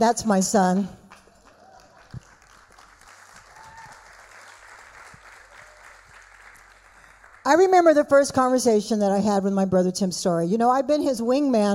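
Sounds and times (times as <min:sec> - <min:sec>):
speech: 0:00.0 - 0:01.0, 0:07.5 - 0:11.7
audience clapping: 0:01.1 - 0:07.5.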